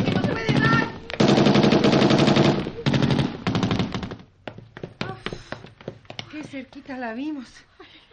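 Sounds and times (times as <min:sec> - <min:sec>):
automatic gunfire: 0:00.0 - 0:04.2
speech: 0:06.5 - 0:07.7.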